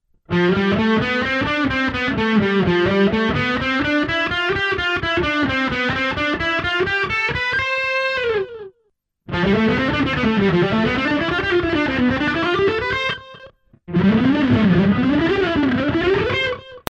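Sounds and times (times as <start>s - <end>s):
music in C major: 0.1s - 16.8s.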